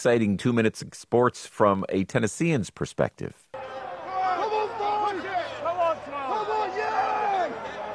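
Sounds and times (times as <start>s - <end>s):
speech: 0.0s - 3.4s
crowd at Kentucky Derby racetrack at Churchill Downs: 3.5s - 7.9s.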